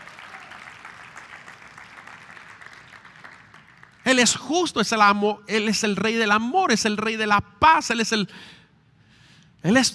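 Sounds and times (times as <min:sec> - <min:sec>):
crowd clapping: 0:00.0 - 0:04.2
speech: 0:04.1 - 0:08.6, 0:09.6 - 0:09.9.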